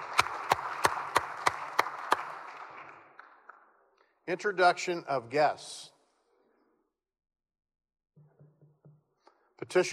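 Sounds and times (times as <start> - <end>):
clapping welcoming a guest to the Senate chamber: 0.0 - 3.8
speech: 4.3 - 5.9, 9.7 - 9.9.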